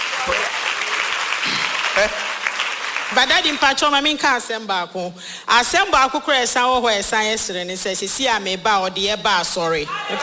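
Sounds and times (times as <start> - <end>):
crowd clapping: 0.0 - 3.8
speech: 2.0 - 2.3, 3.1 - 10.2
voices calling out: 9.8 - 10.2.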